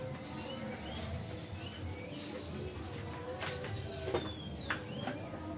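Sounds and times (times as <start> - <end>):
Oriental magpie-robin whistling song: 0.2 - 2.9, 3.8 - 5.4.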